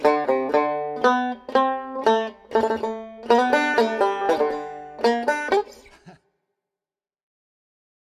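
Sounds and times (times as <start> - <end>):
guitar: 0.0 - 6.2.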